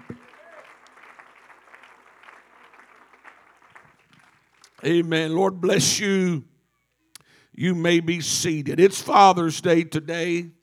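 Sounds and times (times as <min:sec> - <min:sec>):
church congregation clapping during a Sunday evening service: 0:00.0 - 0:06.0
speech: 0:04.8 - 0:06.5, 0:07.6 - 0:10.6.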